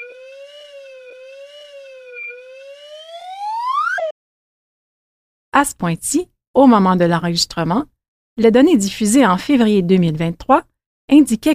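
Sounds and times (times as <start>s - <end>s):
slide whistle rising: 0.0s - 4.2s
speech: 5.6s - 11.5s.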